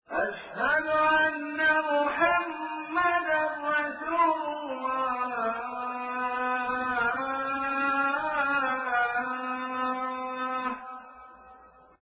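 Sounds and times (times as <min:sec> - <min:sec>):
Azan call to prayer: 0:00.1 - 0:11.8.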